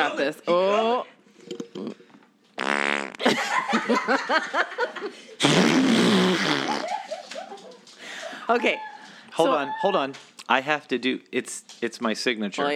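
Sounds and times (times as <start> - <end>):
speech: 0.0 - 1.6, 3.7 - 6.9, 8.5 - 12.7
person making fart noises: 1.6 - 2.0, 2.6 - 3.4, 5.4 - 7.1
people laughing: 3.2 - 5.4, 6.3 - 9.7.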